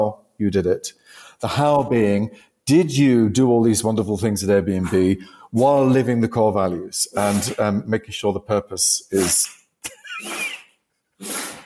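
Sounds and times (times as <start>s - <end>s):
speech: 0.0s - 10.4s, 11.2s - 11.4s
beagle sneezing: 9.2s - 11.6s.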